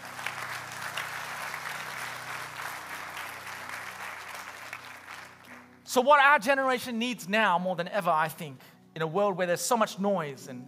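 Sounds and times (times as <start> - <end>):
church congregation applauding in praise of God: 0.0 - 5.9
speech: 6.0 - 10.6.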